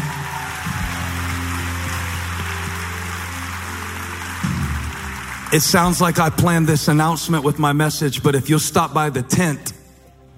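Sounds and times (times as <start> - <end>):
audience clapping hands: 0.0 - 7.7
speech: 5.5 - 9.8.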